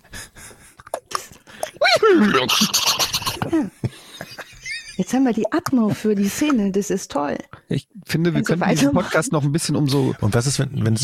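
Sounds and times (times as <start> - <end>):
person imitating a horse neighing: 1.8 - 3.5
speech: 2.1 - 4.0, 5.0 - 11.0.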